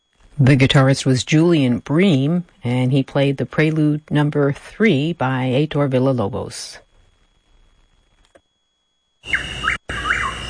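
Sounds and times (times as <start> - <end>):
steady background hiss: 0.0 - 10.4
speech: 0.4 - 6.8
Chuck-will's-widow whistled call: 9.2 - 10.4.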